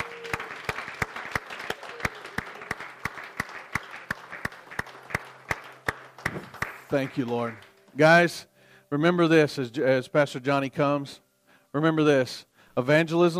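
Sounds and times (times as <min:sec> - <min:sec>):
audience applauding in praise: 0:00.0 - 0:07.8
speech: 0:06.9 - 0:13.3.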